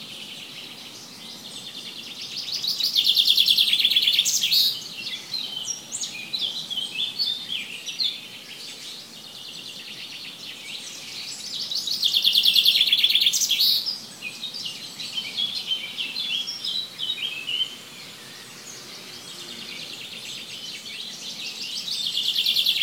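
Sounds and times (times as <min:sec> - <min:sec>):
faint hiss: 0:00.0 - 0:22.8
bird trilling and chirping: 0:02.2 - 0:08.1, 0:11.1 - 0:14.0, 0:15.0 - 0:22.8.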